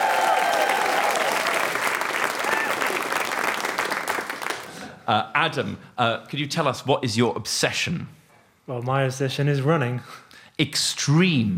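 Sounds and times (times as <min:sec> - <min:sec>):
cheering voices: 0:00.0 - 0:03.6
audience applause welcoming a guest onto a stage: 0:00.0 - 0:04.8
speech: 0:05.1 - 0:11.5.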